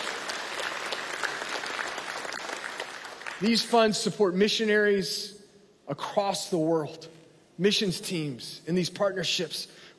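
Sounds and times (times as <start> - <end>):
church audience applause: 0.0 - 3.4
speech: 3.4 - 9.9.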